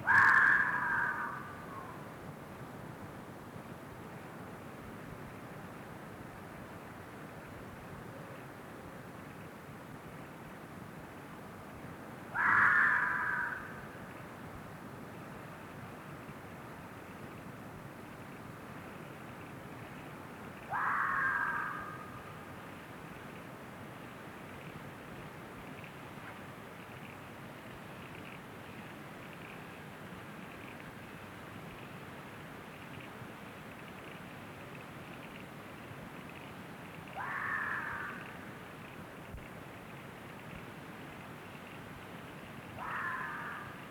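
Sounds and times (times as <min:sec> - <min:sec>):
fox howling: 0:00.1 - 0:02.0, 0:12.3 - 0:13.8, 0:20.7 - 0:22.1, 0:37.1 - 0:38.3, 0:42.8 - 0:43.7.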